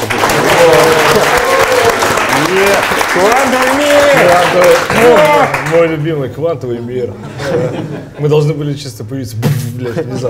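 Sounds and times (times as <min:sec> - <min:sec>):
audience applause: 0:00.0 - 0:06.0
speech: 0:02.6 - 0:10.2
laughter: 0:07.2 - 0:08.5, 0:09.8 - 0:10.2.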